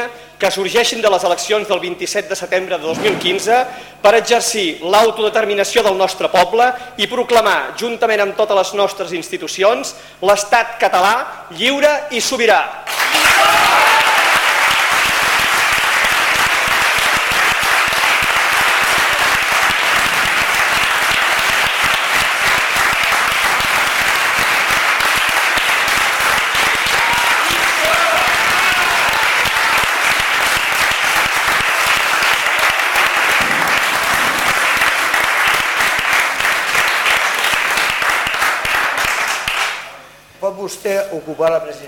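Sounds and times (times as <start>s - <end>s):
speech: 0.1s - 13.0s, 41.2s - 41.8s
applause in parliament: 12.9s - 39.9s.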